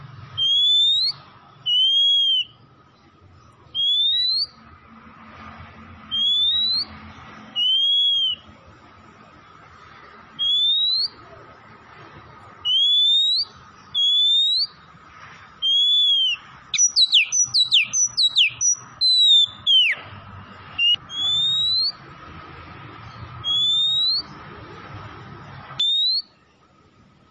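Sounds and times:
Oriental magpie-robin whistles: 0.3 - 2.6, 3.7 - 4.6, 6.1 - 7.0, 7.6 - 8.5, 10.4 - 11.2, 12.6 - 14.8, 15.6 - 20.0, 20.8 - 22.0, 23.4 - 24.4, 25.8 - 26.4.

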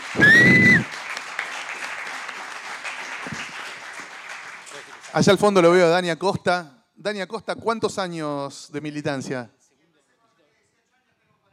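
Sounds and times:
audience applause: 0.0 - 5.6
speech: 0.1 - 0.7, 5.2 - 9.6.

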